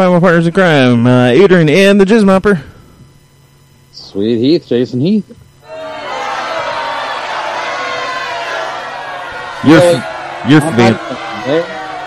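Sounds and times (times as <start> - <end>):
speech: 0.0 - 2.8, 3.9 - 5.4, 9.6 - 11.8
crowd booing: 5.6 - 12.0.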